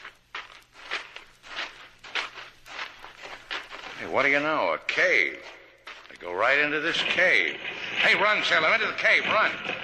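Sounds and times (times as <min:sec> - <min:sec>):
footsteps following a trail of prints across the ground: 0:00.0 - 0:06.6
speech: 0:04.0 - 0:05.6, 0:06.2 - 0:09.7.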